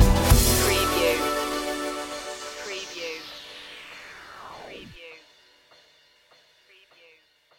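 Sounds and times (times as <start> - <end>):
electron stinger: 0.2 - 5.1.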